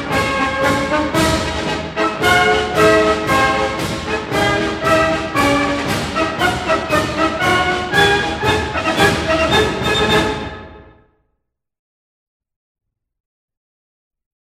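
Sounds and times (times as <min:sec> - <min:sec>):
march music: 0:00.0 - 0:11.1.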